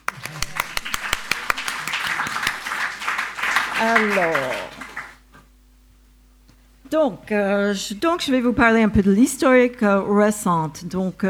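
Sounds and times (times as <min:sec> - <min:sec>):
audience applause from a nearby crowd: 0:00.0 - 0:05.2
speech: 0:03.8 - 0:04.7, 0:06.9 - 0:11.2.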